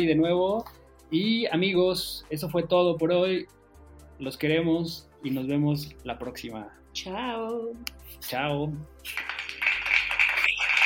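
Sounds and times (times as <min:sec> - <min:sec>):
speech: 0:00.0 - 0:03.6, 0:04.2 - 0:09.3
applause: 0:09.0 - 0:10.8.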